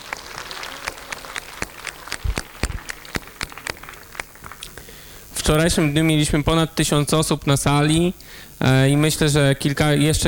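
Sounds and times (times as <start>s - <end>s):
audience applause: 0.0s - 4.9s
speech: 5.5s - 10.2s.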